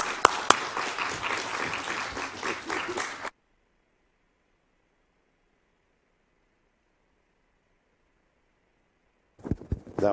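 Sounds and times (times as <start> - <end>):
audience applause welcoming a speaker on stage: 0.0 - 3.3.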